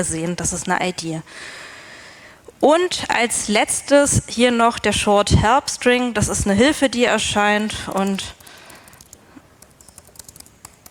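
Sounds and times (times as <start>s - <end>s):
speech: 0.0s - 1.7s, 2.6s - 8.4s
typing text on a computer keyboard: 7.6s - 10.8s.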